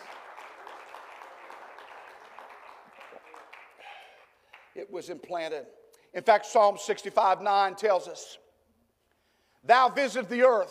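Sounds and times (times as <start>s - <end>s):
audience clapping hands: 0.0s - 4.9s
speech: 4.8s - 8.4s, 9.6s - 10.6s.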